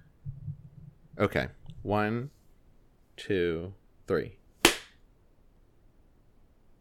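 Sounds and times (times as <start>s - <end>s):
speech: 1.2s - 2.4s, 3.2s - 4.4s
hand clap: 4.6s - 5.0s.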